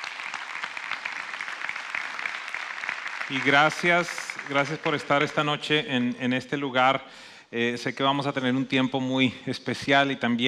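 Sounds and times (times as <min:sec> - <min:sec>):
audience applause: 0:00.0 - 0:05.7
speech: 0:03.3 - 0:10.4.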